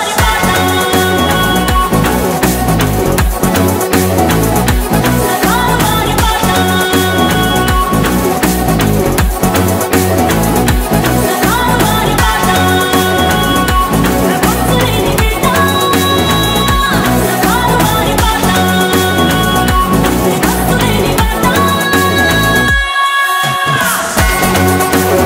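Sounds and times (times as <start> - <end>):
theme song ringtone: 0.2 - 22.8, 23.6 - 25.2.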